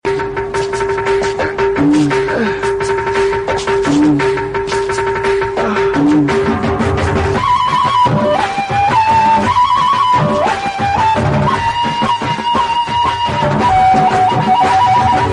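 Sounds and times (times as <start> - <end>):
flute: 0.1 - 15.3.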